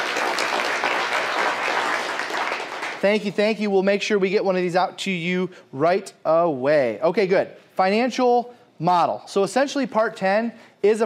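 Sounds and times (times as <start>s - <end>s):
audience applauding at a Glover U Coaching event: 0.0s - 3.0s
speech: 3.0s - 11.0s.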